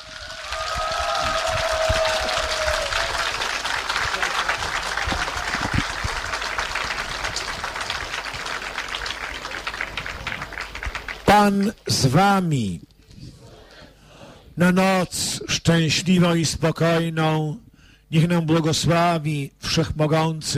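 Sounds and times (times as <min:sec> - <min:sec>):
crowd applauding: 0:00.0 - 0:11.9
speech: 0:11.4 - 0:12.9, 0:14.6 - 0:20.5.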